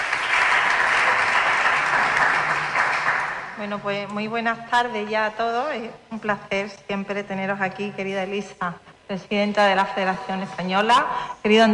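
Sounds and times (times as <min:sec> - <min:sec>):
audience applause: 0:00.0 - 0:03.6
speech: 0:03.6 - 0:11.7.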